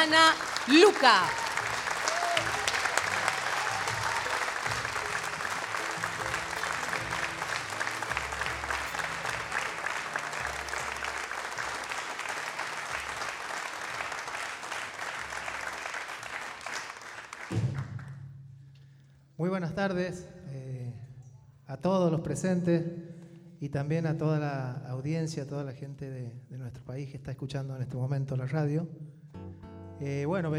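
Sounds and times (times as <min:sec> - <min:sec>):
speech: 0:00.0 - 0:01.4, 0:19.4 - 0:20.3, 0:21.7 - 0:29.1, 0:30.0 - 0:30.5
audience applause in auditorium: 0:00.0 - 0:18.2.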